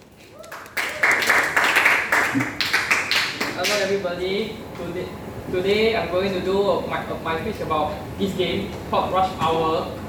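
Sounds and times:
audience applause: 0.4 - 3.6
speech: 2.3 - 2.6, 3.6 - 10.0.

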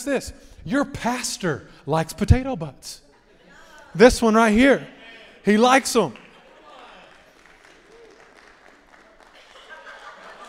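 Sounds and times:
speech: 0.0 - 3.0, 3.9 - 6.2
laughter: 3.1 - 4.0, 6.2 - 8.2, 8.9 - 10.4
sparse congregation clapping: 5.8 - 10.4.

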